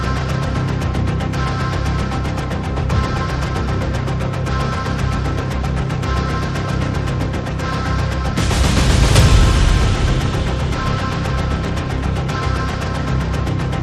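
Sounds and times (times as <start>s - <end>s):
percussion pulses: 0.0s - 13.8s
sound effects: 8.3s - 13.3s.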